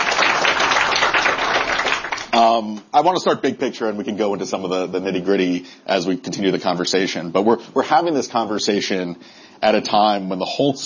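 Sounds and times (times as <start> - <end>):
audience clapping for two state governors at an education panel: 0.0 - 2.5
speech: 2.6 - 10.8.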